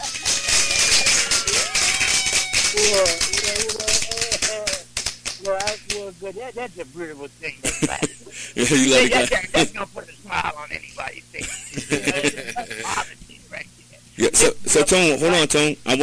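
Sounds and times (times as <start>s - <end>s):
laughter: 0.0s - 4.8s, 7.6s - 13.4s
hand claps: 0.0s - 6.1s
speech: 2.9s - 3.6s, 6.2s - 13.0s, 14.4s - 16.0s.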